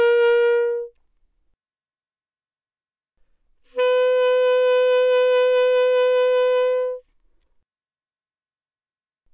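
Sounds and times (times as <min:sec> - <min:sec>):
alto saxophone with vibrato: 0:00.0 - 0:01.0, 0:03.7 - 0:07.1.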